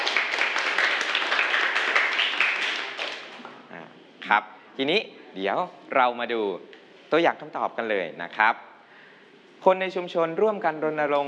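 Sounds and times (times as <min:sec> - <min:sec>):
students applauding classmates: 0:00.0 - 0:03.6
speech: 0:04.3 - 0:08.7, 0:09.6 - 0:11.2.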